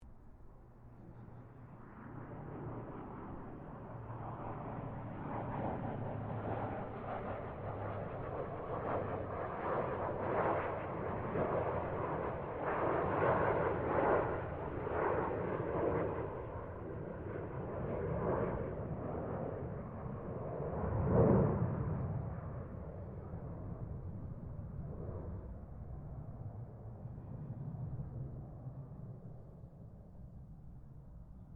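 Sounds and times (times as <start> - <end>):
Gloster Meteor F Mk8 jet aircraft passing distant: 0.0 - 31.5.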